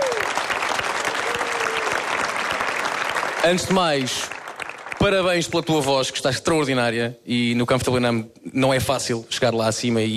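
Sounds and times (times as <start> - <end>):
audience applause: 0.0 - 5.2
speech: 3.4 - 4.4, 5.0 - 10.1.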